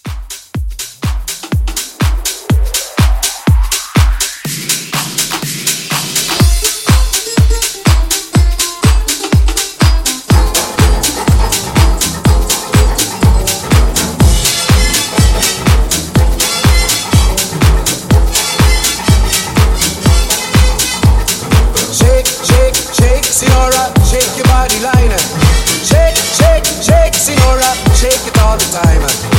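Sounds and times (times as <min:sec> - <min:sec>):
60s pop house mixshow mix: 0:00.0 - 0:29.3.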